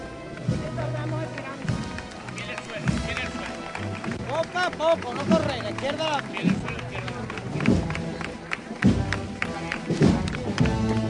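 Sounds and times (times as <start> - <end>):
crowd clapping in a town square: 0.2 - 11.0
speech: 4.5 - 6.8.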